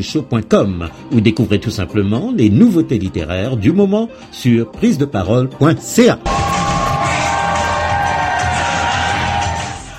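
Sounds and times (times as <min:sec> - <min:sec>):
speech: 0:00.0 - 0:06.4
Parti Québécois supporters cheering Paul St-Pierre Plamondon in Drummondville: 0:06.2 - 0:09.9.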